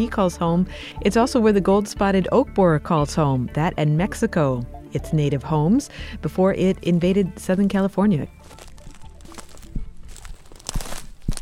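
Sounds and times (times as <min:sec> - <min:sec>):
speech: 0:00.0 - 0:08.6
footsteps crunching on dry ground: 0:07.6 - 0:11.3
noisy rustle: 0:08.4 - 0:11.3.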